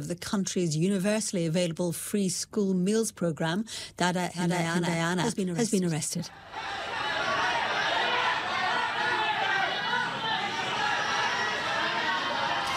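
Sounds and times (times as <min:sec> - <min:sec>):
speech: 0:00.0 - 0:06.9
crowd chanting and shouting: 0:06.3 - 0:12.7.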